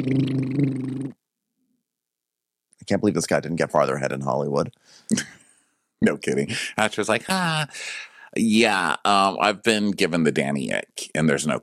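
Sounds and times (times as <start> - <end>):
speech: 0.0 - 0.7, 2.9 - 5.4, 6.0 - 11.6
man making fart noises with mouth: 0.0 - 1.2.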